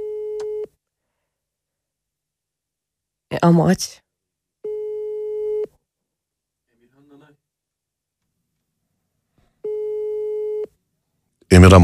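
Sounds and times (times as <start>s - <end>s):
speech: 3.4s - 4.0s, 11.5s - 11.8s
phone call ringing tone: 4.6s - 5.7s, 9.6s - 10.7s.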